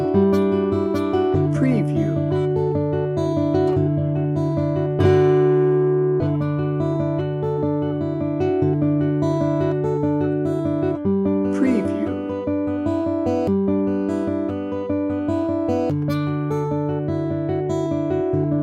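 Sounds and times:
sweet and mellow guitar: 0:00.0 - 0:18.6.

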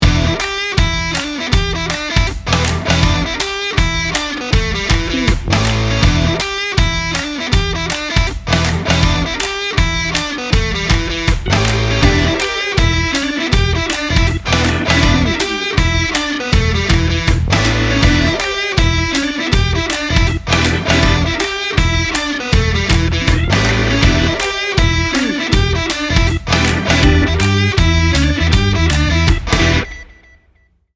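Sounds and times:
beer party noise: 0:00.0 - 0:30.1.

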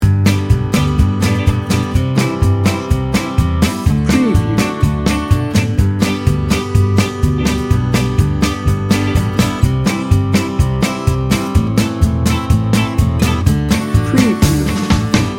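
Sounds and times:
Tex-Mex fiesta music loop: 0:00.0 - 0:15.3.

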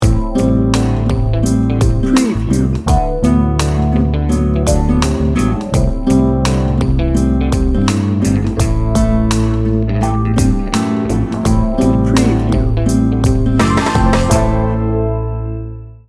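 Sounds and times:
slinky soul music: 0:00.0 - 0:16.0.

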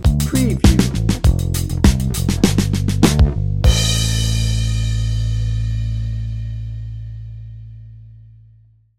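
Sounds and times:
drum and bass music: 0:00.0 - 0:06.1.

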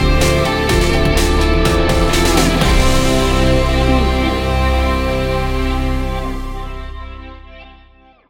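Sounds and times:
music sting bumper: 0:00.1 - 0:07.2.

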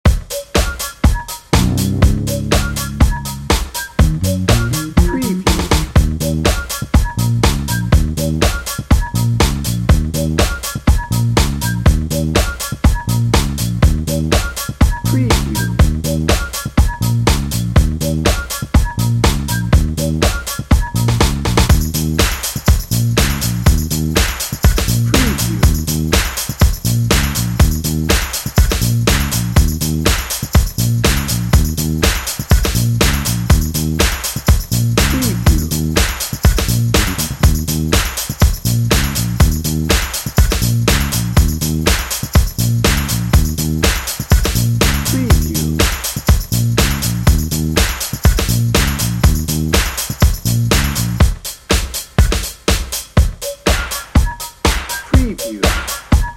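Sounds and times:
party drum and bass music: 0:00.0 - 0:56.3.

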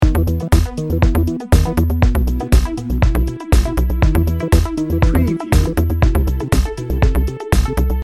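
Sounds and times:
bouncy dreamy music loop: 0:00.0 - 0:08.0.

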